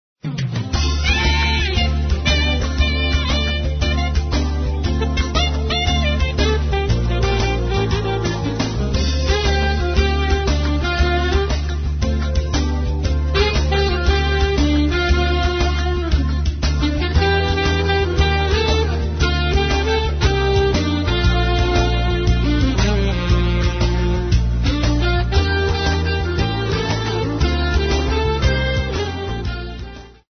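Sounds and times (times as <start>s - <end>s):
jazz pop music: 0.2s - 30.3s.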